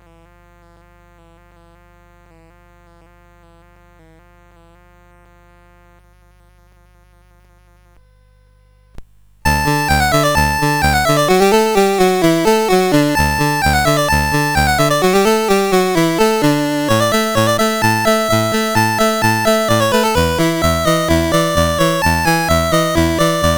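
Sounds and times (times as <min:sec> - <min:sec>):
musette CSG8580R5: 0:09.5 - 0:23.5.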